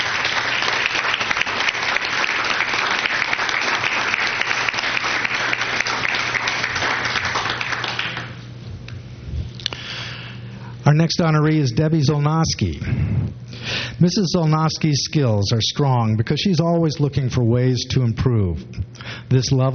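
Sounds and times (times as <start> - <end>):
audience applause: 0.0 - 8.4
speech: 11.0 - 13.1, 14.0 - 19.7.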